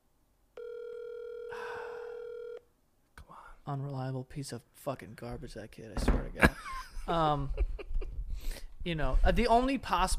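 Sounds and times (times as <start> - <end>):
outgoing phone call ringback tone: 0.6 - 2.6
speech: 3.6 - 7.8, 8.8 - 10.1.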